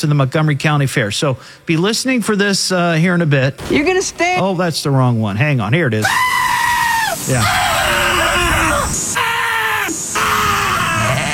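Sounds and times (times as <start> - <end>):
speech: 0.0 - 6.6, 7.2 - 8.0
sheep screaming: 6.0 - 11.3.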